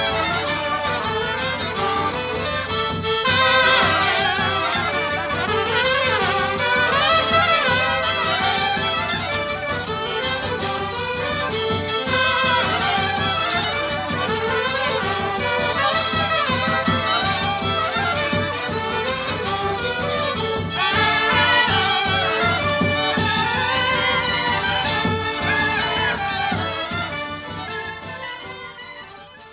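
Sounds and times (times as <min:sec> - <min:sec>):
band playing polka: 0:00.0 - 0:29.5.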